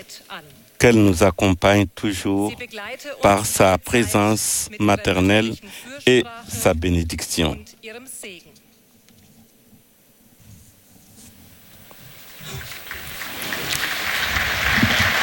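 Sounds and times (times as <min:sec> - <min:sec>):
speech: 0:00.1 - 0:08.6
pilgrims applauding: 0:12.5 - 0:15.2.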